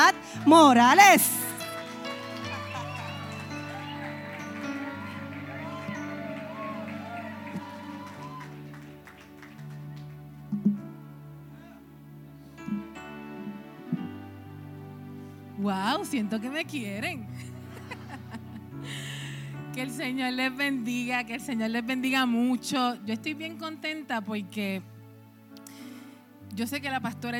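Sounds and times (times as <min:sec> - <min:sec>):
speech: 0:00.0 - 0:01.4, 0:15.7 - 0:17.4, 0:19.8 - 0:24.9, 0:26.6 - 0:27.3
audience applause: 0:00.0 - 0:10.4.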